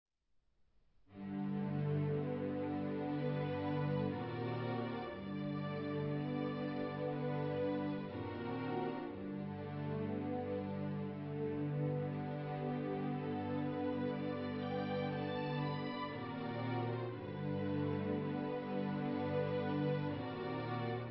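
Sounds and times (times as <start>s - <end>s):
string quartet: 1.2s - 21.0s.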